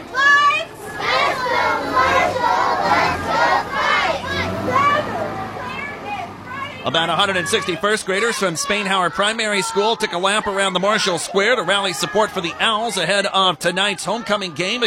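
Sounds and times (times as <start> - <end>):
young schoolchildren chanting slogans: 0.2 - 12.5
children cheering: 0.2 - 14.8
speech: 6.9 - 14.8.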